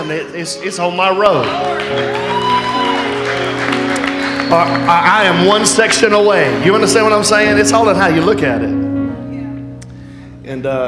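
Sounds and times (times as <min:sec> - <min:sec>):
speech: 0:00.0 - 0:03.7, 0:04.5 - 0:08.8, 0:10.5 - 0:10.8
audience clapping: 0:01.2 - 0:07.8.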